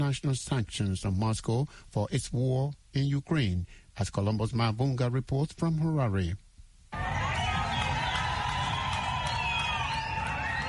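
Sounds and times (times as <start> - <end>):
speech: 0.0 - 7.0
crowd clapping and cheering: 6.9 - 10.6.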